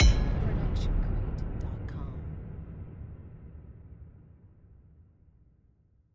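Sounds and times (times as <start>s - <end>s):
epic metal hit: 0.0s - 1.7s.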